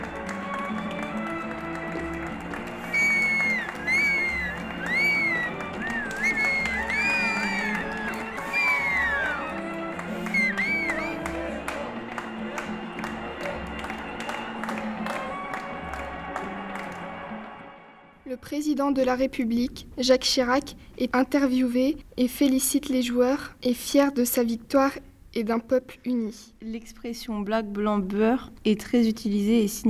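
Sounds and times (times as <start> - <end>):
huge crowd cheering and clapping France's 1998 World Cup win on the Champs-Élysées: 0.0 - 17.7
shrill wavering whistles from the celebrating crowd: 2.6 - 11.3
speech: 18.7 - 29.8.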